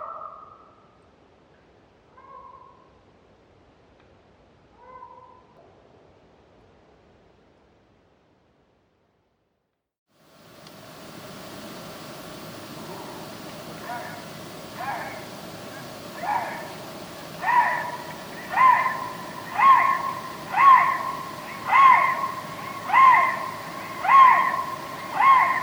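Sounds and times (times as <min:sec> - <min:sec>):
lynx call: 0:10.3 - 0:25.6.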